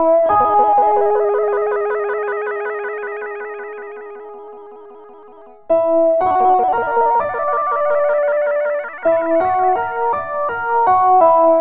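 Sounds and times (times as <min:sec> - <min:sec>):
city three-part melody music: 0:00.1 - 0:02.9, 0:05.7 - 0:11.5.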